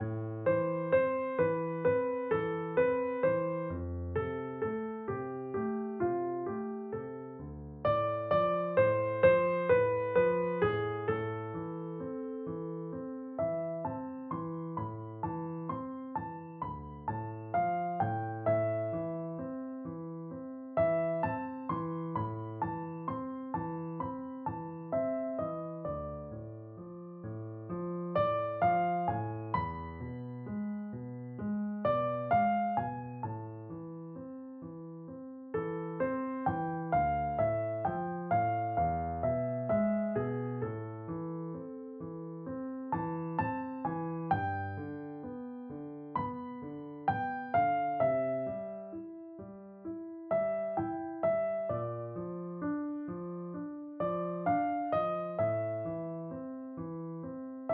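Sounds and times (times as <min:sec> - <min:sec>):
piano: 0:00.0 - 0:57.7.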